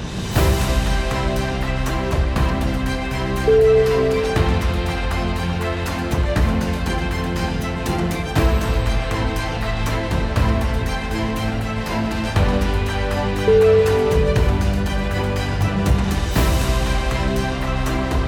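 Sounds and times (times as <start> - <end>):
big triumphant sound: 0.3 - 18.2.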